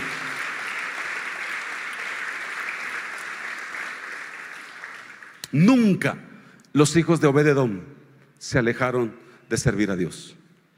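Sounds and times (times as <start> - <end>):
audience applause: 0.0 - 5.5
speech: 5.5 - 10.4.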